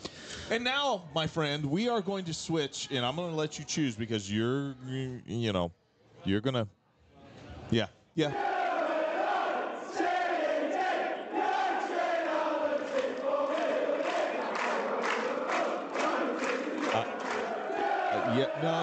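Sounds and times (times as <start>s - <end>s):
speech: 0.5s - 6.8s, 7.7s - 8.5s, 18.4s - 18.8s
tepid applause: 8.3s - 18.8s.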